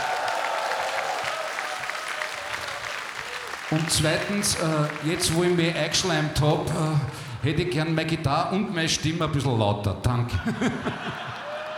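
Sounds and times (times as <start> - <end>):
audience applause at a live music show for the sound technicians: 0.0 - 7.3, 11.0 - 11.7
speech: 3.7 - 11.3
laughter: 10.2 - 11.7.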